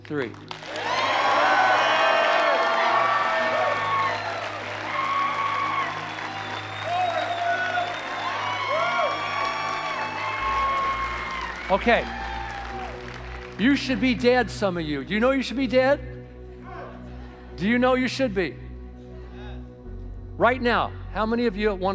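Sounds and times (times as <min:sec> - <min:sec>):
audience clapping: 0:00.0 - 0:14.5
speech: 0:00.1 - 0:00.9, 0:11.7 - 0:12.3, 0:13.6 - 0:16.1, 0:17.6 - 0:18.6, 0:20.4 - 0:21.9
audience shouting praises and whooping: 0:00.8 - 0:13.0.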